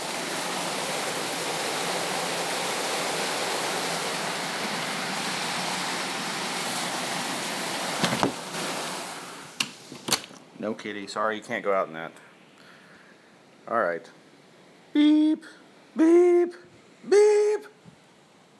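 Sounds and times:
heavy rain from Tropical Storm Bill in Texas: 0.0s - 9.6s
speech: 10.6s - 12.3s, 13.7s - 14.2s, 15.0s - 17.3s.

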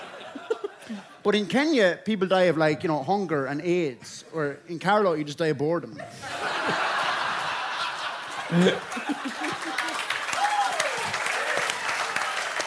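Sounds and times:
laughter: 0.0s - 1.2s, 6.0s - 10.4s
speech: 0.4s - 6.9s, 8.5s - 10.1s
clapping: 8.2s - 12.6s.

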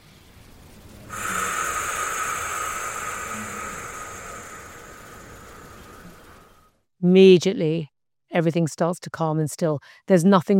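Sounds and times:
breathing in: 1.0s - 6.7s
speech: 7.0s - 10.5s.

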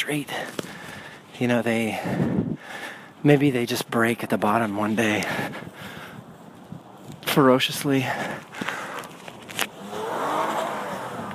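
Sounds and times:
speech: 0.0s - 0.7s, 1.4s - 5.8s, 7.4s - 8.6s
four-wheel-drive car engine driving in snow at night: 9.6s - 11.3s.

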